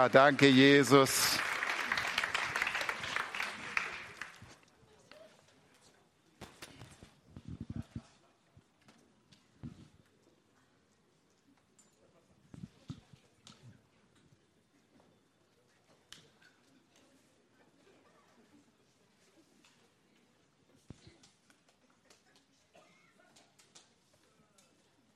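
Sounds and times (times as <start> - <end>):
speech: 0.0 - 1.5
audience applause at a church service: 0.0 - 4.6.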